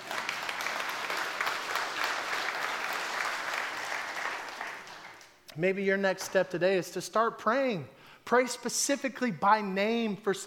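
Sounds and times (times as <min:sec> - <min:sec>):
audience clapping: 0:00.0 - 0:05.4
speech: 0:05.6 - 0:10.4.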